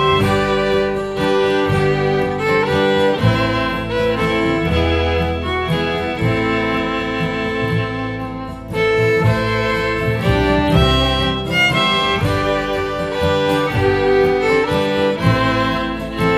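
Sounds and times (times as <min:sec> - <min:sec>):
bass: 0:00.0 - 0:16.3.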